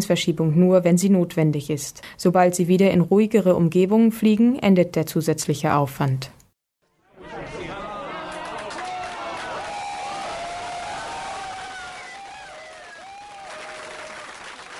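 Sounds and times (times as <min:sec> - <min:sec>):
speech: 0:00.0 - 0:06.4
LHC control room erupting in cheers: 0:07.0 - 0:14.7.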